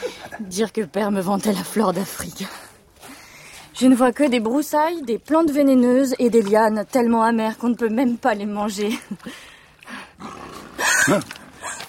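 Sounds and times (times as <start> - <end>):
speech: 0.4 - 2.6, 3.8 - 9.5, 11.1 - 11.4
wild big cats growling and roaring: 10.2 - 11.5.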